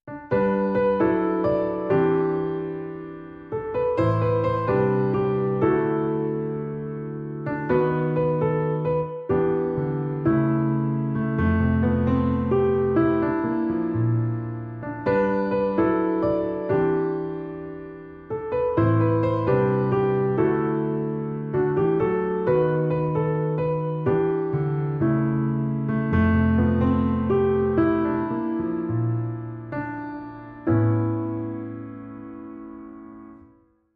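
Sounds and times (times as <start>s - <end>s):
solo piano: 0.0s - 33.9s.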